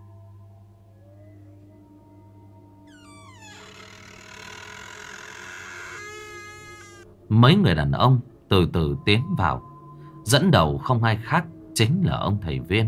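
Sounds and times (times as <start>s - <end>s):
old door hinge creaking open: 2.9s - 7.1s
speech: 7.3s - 9.7s, 10.3s - 12.8s.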